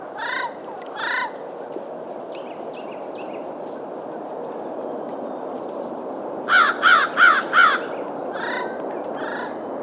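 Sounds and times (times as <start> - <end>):
American crows cawing: 0.2 - 1.4, 6.5 - 9.6.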